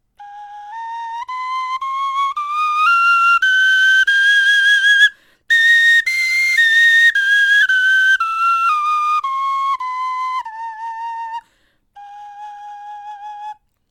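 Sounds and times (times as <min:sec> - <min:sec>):
bone flutes playing a scale: 0:00.2 - 0:13.6.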